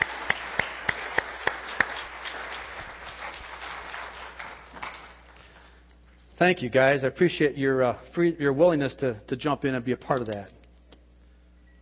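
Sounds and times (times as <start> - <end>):
audience applause for actors: 0.0 - 5.4
speech: 6.4 - 10.6.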